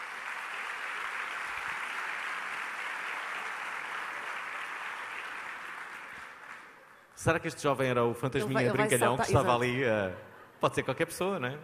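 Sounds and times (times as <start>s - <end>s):
applause: 0.0s - 7.3s
speech: 7.2s - 11.6s
laughter: 8.4s - 10.6s.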